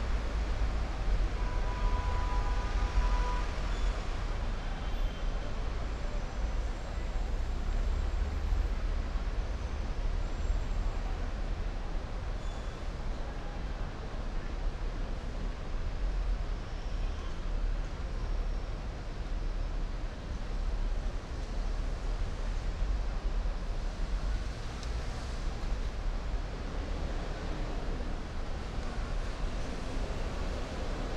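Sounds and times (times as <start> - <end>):
loud city soundscape: 0.0 - 31.1.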